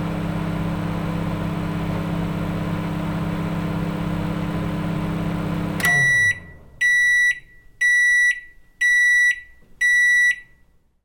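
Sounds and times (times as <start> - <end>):
household microwave running at full power: 0.0 - 7.0
household microwave beeps: 5.6 - 10.7.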